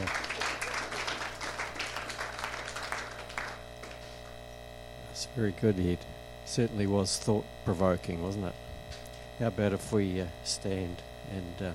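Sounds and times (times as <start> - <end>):
audience clapping: 0.0 - 4.4
speech: 5.4 - 8.6, 9.4 - 11.7.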